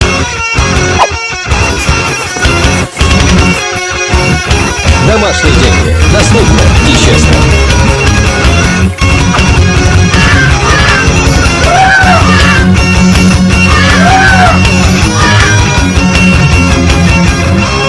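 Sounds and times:
Russian rock and roll music: 0.0s - 17.8s.

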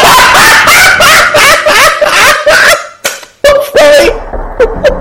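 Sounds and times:
person laughing: 0.1s - 2.9s, 4.5s - 4.9s.

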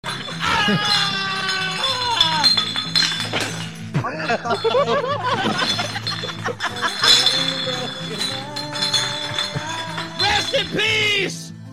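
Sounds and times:
laughter: 0.0s - 1.6s, 4.0s - 7.2s
bottles: 0.0s - 11.2s.

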